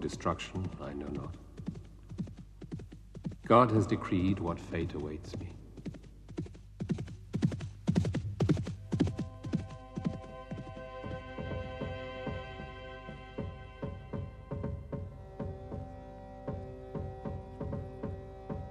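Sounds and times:
speech: 0:00.0 - 0:01.5, 0:03.5 - 0:05.6
horse at full gallop: 0:00.0 - 0:18.6
low sustained hum: 0:08.4 - 0:17.5.

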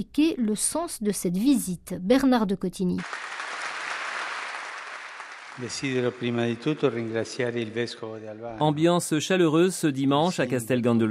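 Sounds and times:
speech: 0:00.0 - 0:03.4, 0:05.6 - 0:11.1
crowd applause welcoming a visitor: 0:03.0 - 0:09.2.

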